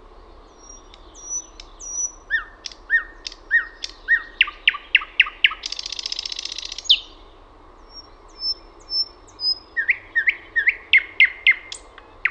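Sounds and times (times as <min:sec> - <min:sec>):
thrush nightingale singing: 0:00.0 - 0:12.2.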